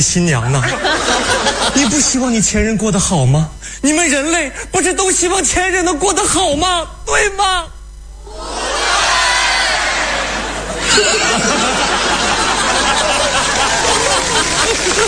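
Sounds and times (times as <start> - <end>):
speech: 0.0 - 7.8
laughter: 0.4 - 2.2, 10.1 - 15.0
cheering: 8.3 - 15.0
large audience applause: 8.7 - 15.0.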